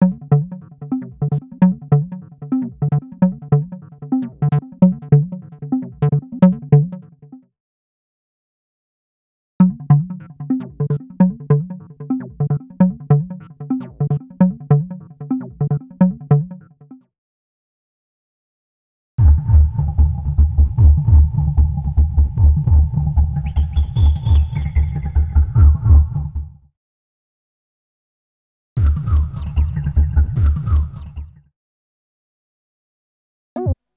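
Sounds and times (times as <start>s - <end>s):
synth and bass loop at 150 bpm: 0.0s - 7.0s, 9.6s - 16.6s, 19.2s - 26.4s, 28.8s - 31.3s.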